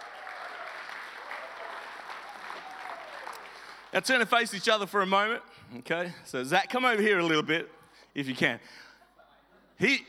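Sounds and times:
audience applause: 0.0 - 3.9
speech: 3.9 - 8.9, 9.8 - 10.0.

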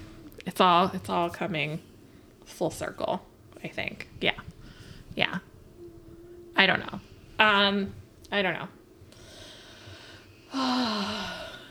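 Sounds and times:
speech: 0.6 - 1.9, 2.5 - 4.5, 5.2 - 5.5, 6.6 - 8.8, 10.5 - 11.4
deep breath taken before speaking: 4.6 - 5.1, 9.1 - 11.6.

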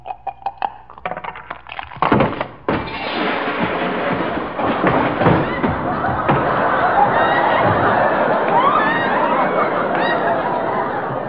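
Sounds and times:
dice thrown and tumbling downstairs: 0.0 - 9.0
laughter: 4.6 - 11.2.

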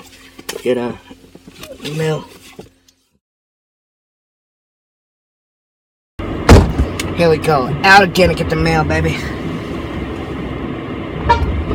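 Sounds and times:
engine and road noise: 0.0 - 3.2, 6.2 - 11.7
speech: 0.6 - 1.2, 1.8 - 2.4, 7.2 - 9.4
car horn beep: 11.2 - 11.7.

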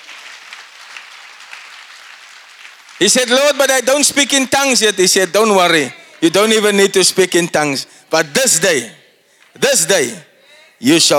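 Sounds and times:
church congregation clapping during a sermon praising Jesus: 0.0 - 6.8
speech: 3.0 - 9.0, 9.6 - 11.1.

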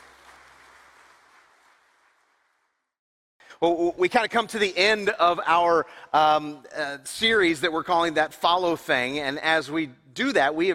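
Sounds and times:
audience applause: 0.0 - 2.6
speech: 3.6 - 10.7.

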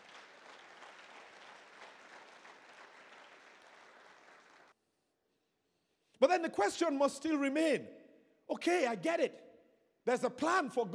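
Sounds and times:
audience clapping: 0.0 - 4.7
speech: 6.2 - 9.4, 10.0 - 10.9.

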